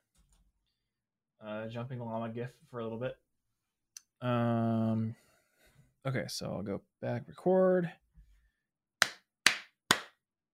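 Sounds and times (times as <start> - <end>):
speech: 1.4 - 3.2, 4.2 - 5.2, 6.0 - 8.0
hand claps for sync: 9.0 - 10.2.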